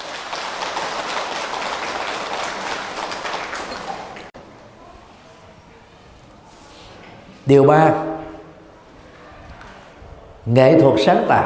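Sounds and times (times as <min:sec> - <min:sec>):
big round of audience applause: 0:00.0 - 0:04.3
speech: 0:07.5 - 0:08.1, 0:10.5 - 0:11.4.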